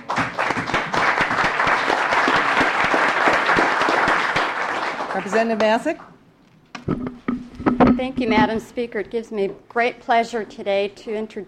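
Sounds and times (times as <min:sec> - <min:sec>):
applause in the Alaska legislative chamber greeting guests: 0:00.0 - 0:05.9
speech: 0:05.2 - 0:06.1, 0:06.9 - 0:07.3, 0:07.9 - 0:11.4.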